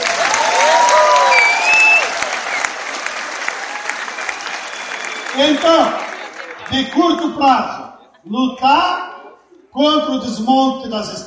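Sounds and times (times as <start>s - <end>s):
crowd applause: 0.0s - 8.0s
shrill whistles: 1.2s - 2.8s, 4.3s - 5.7s
speech: 5.4s - 6.0s, 6.7s - 9.0s, 9.8s - 11.2s
laughter: 5.4s - 9.4s.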